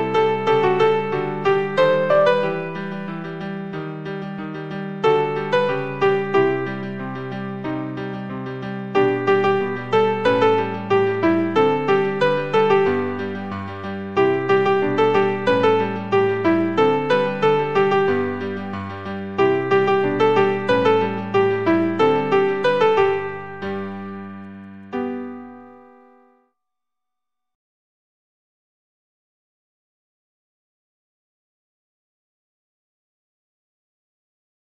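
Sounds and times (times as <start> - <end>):
instrumental music: 0.0 - 26.5.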